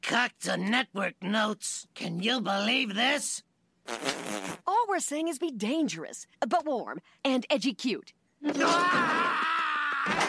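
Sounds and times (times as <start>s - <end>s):
speech: 0.1s - 10.2s
scream: 8.5s - 10.2s.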